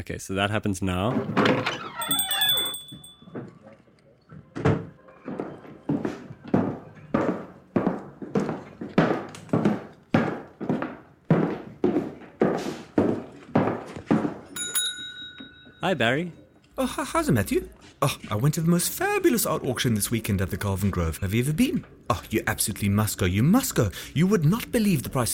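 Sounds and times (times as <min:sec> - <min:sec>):
speech: 0:00.0 - 0:02.3, 0:15.9 - 0:25.3
footsteps entering shop: 0:01.1 - 0:15.8
little bell on shop door ringing: 0:01.7 - 0:03.7, 0:14.6 - 0:16.5.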